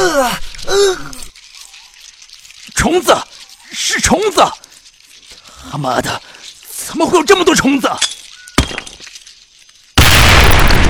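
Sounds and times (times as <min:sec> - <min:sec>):
speech: 0:00.2 - 0:01.2, 0:02.8 - 0:04.6, 0:05.6 - 0:08.9
hand grenade explosion thrown at a swarm of insects: 0:10.0 - 0:10.8.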